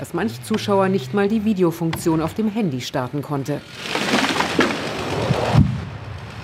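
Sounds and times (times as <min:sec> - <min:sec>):
speech: 0:00.0 - 0:04.2
crackling splintering branches: 0:03.6 - 0:05.8
felled oak tree crashing to the ground: 0:03.6 - 0:06.4.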